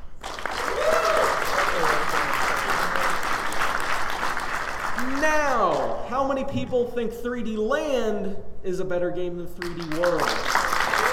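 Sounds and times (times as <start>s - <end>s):
audience applause: 0.2s - 6.0s, 9.6s - 11.1s
speech: 6.4s - 10.6s.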